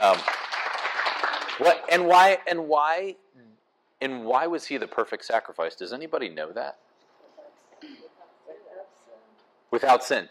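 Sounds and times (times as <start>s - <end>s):
small group clapping: 0.0s - 2.4s
speech: 1.6s - 6.8s, 9.7s - 10.2s.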